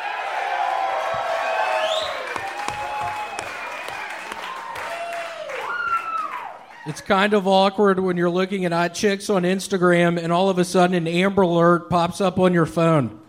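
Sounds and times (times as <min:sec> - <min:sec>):
crowd cheering: 0:00.0 - 0:07.5
whoops and whistles: 0:01.6 - 0:03.6, 0:04.4 - 0:06.6
speech: 0:06.9 - 0:13.2.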